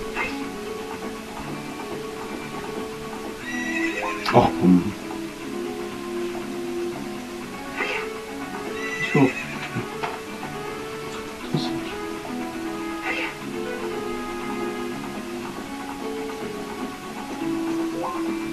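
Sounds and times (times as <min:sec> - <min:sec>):
horse hooves clip-clopping: 0:00.0 - 0:18.5
outdoor noise: 0:00.0 - 0:18.5
horse neighing: 0:03.4 - 0:04.9, 0:07.7 - 0:10.0, 0:12.9 - 0:15.0
speech: 0:04.3 - 0:05.0.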